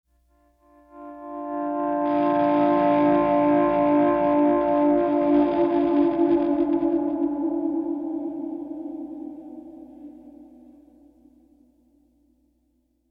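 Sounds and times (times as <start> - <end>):
pleasant guitar playing: 0.8 - 11.0.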